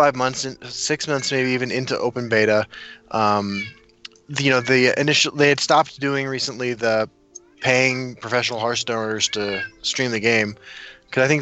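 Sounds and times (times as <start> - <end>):
speech: 0.0 - 11.4
cat meowing: 1.1 - 1.6, 3.2 - 3.8, 4.4 - 5.0, 9.2 - 10.0.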